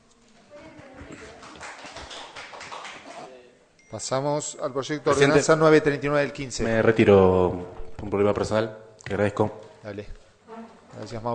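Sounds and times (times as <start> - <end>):
applause after council vote: 0.9 - 3.3
speech: 3.9 - 10.2, 11.0 - 11.3.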